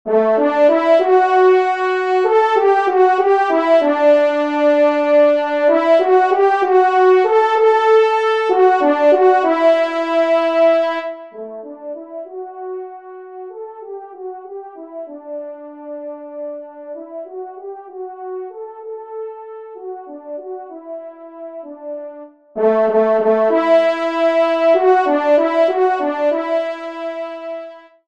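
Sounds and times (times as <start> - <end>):
horn: 0.1 - 28.0.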